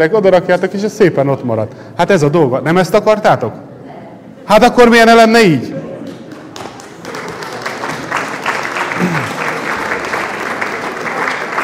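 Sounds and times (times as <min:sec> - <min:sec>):
speech: 0:00.0 - 0:03.6, 0:04.5 - 0:05.8
audience applause: 0:06.1 - 0:11.6.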